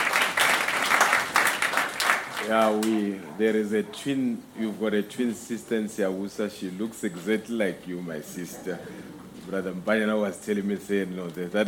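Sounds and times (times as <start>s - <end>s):
crowd clapping: 0.0s - 3.0s
speech: 2.5s - 11.6s.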